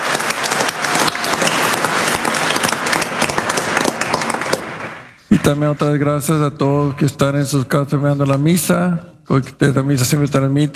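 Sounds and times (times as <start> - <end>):
audience applause in a resonant room: 0.0 - 6.0
speech: 5.3 - 10.7.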